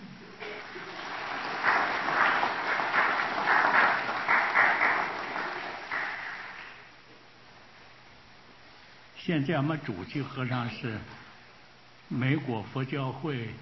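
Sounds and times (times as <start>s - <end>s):
audience applause: 0.4s - 6.9s
speech: 9.3s - 11.2s, 12.1s - 13.5s.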